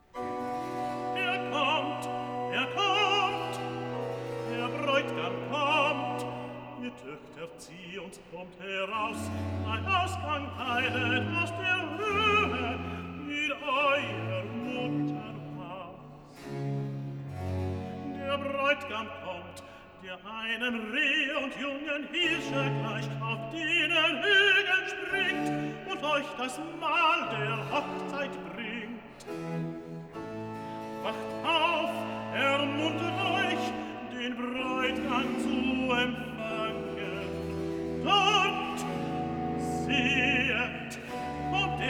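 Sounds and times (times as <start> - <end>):
tenor singing cantata recitative: 0.0 - 41.8.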